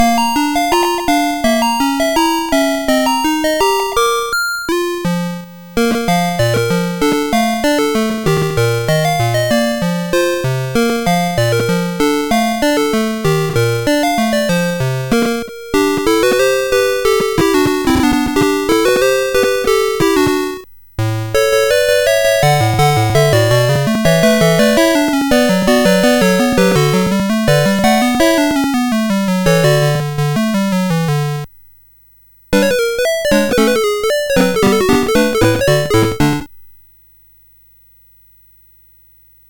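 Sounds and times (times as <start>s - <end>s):
music box melody on SID MOS6581R4 chip: 0.0s - 20.6s, 21.3s - 31.5s, 32.6s - 36.5s.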